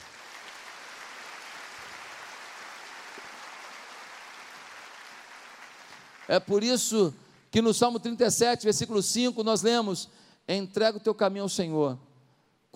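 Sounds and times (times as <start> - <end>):
round of applause: 0.0 - 7.5
speech: 6.3 - 12.1.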